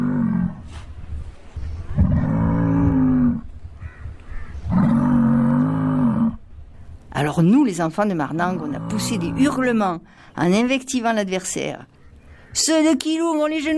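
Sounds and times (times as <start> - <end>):
bull grunting and bellowing: 0.0 - 0.8, 1.9 - 3.6, 4.6 - 6.6, 8.3 - 9.8
speech: 7.2 - 13.7.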